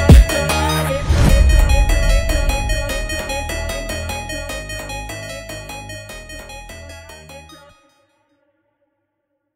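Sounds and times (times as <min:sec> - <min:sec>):
Brazilian funk music: 0:00.0 - 0:07.5.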